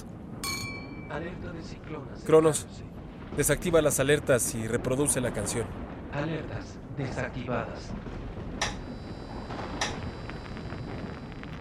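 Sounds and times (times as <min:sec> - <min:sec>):
low rumble: 0:00.0 - 0:11.5
glasses clinking in a toast: 0:00.4 - 0:01.2
speech: 0:01.1 - 0:08.2.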